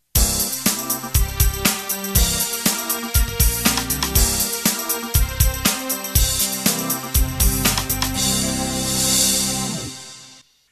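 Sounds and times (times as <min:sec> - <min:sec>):
fusion music: 0:00.0 - 0:10.4.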